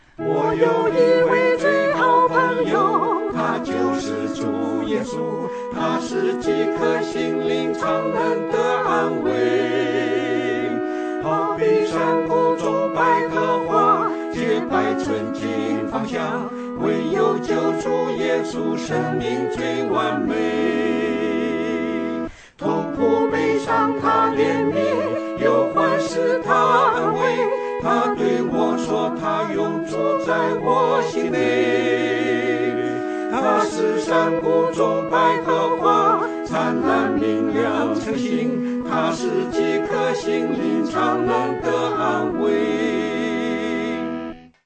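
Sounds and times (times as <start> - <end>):
four-part choir singing: 0.2 - 44.4.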